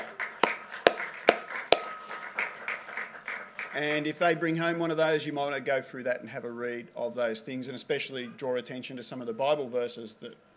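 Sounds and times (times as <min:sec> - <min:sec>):
audience clapping: 0:00.0 - 0:04.1
speech: 0:03.8 - 0:10.5.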